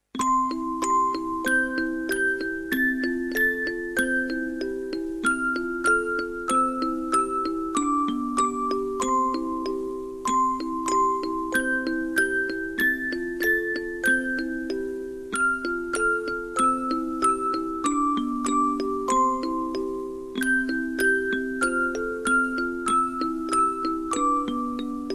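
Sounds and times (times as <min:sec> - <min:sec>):
music box: 0:00.1 - 0:25.1.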